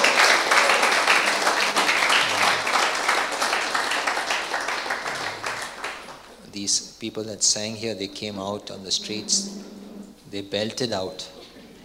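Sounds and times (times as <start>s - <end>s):
audience applause: 0.0s - 6.3s
speech: 6.6s - 11.4s.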